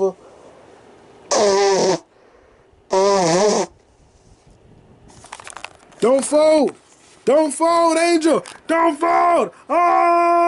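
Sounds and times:
nose blowing: 0:01.3 - 0:02.1, 0:02.9 - 0:03.8
speech: 0:06.0 - 0:10.4.

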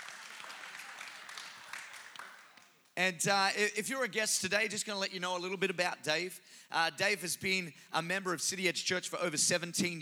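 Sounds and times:
audience applause: 0:00.0 - 0:02.8
speech: 0:03.0 - 0:10.0.

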